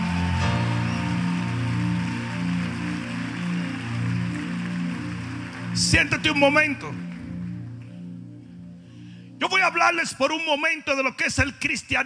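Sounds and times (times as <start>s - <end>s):
crowd applauding: 0.0s - 8.1s
speech: 5.8s - 7.1s, 9.6s - 12.0s.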